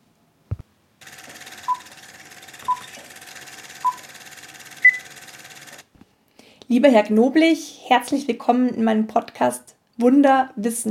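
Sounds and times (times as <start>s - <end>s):
thump: 0.5s - 0.7s
medical monitoring device beeping: 1.1s - 5.8s
speech: 6.7s - 10.8s.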